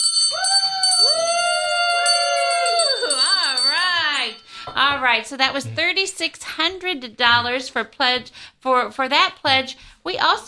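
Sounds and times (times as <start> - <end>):
celebration bell ringing: 0.0 - 4.6
speech: 4.8 - 10.4.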